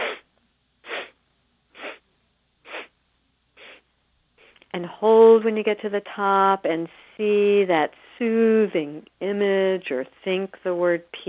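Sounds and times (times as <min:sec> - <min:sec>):
short breathy sniffs through the nostrils: 0:00.0 - 0:02.0, 0:02.6 - 0:02.9, 0:03.6 - 0:03.8, 0:04.4 - 0:04.6
speech: 0:04.7 - 0:11.2.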